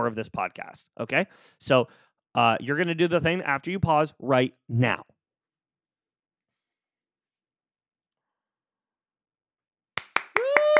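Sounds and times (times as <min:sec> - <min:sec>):
speech: 0:00.0 - 0:05.2
hand clapping: 0:10.0 - 0:10.7.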